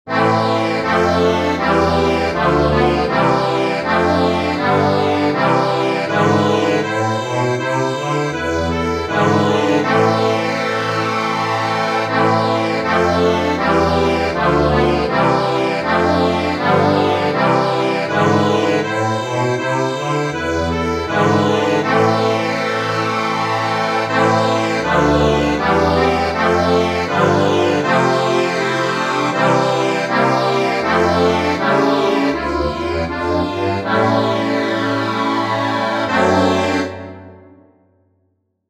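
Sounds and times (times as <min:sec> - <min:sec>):
accordion: 0:00.1 - 0:37.6.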